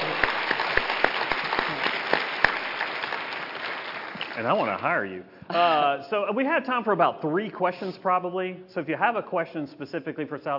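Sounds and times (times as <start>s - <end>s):
audience applause: 0.0s - 4.9s
speech: 4.4s - 10.5s.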